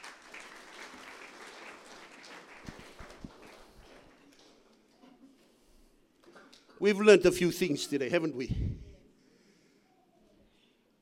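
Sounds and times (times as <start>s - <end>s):
audience clapping: 0.0s - 4.7s
speech: 6.8s - 8.9s.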